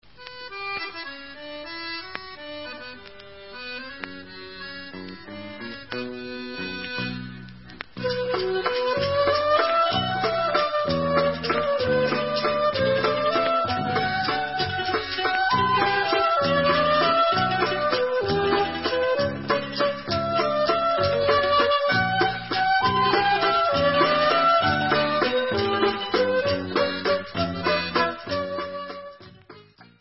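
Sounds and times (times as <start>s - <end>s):
instrumental waltz: 0.0s - 29.9s.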